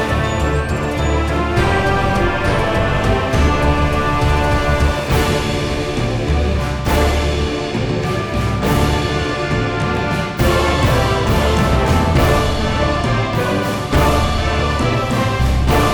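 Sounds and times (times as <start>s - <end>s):
music track at 102 BPM: 0.0s - 15.9s.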